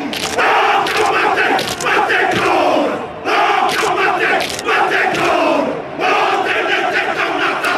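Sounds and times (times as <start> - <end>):
stomps and slaps: 0.0 - 2.6, 3.7 - 5.4
Maori haka war chant: 0.0 - 7.7.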